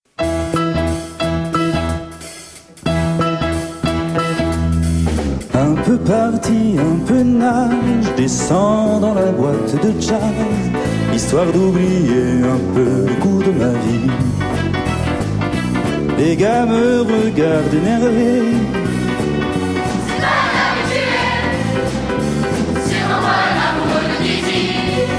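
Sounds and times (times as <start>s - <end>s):
jazz music: 0.1s - 25.1s.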